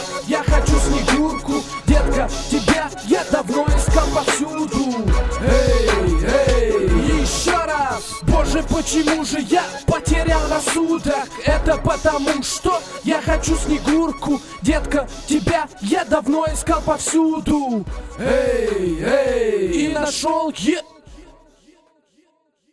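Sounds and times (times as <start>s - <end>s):
micro street beat: 0.0s - 20.6s.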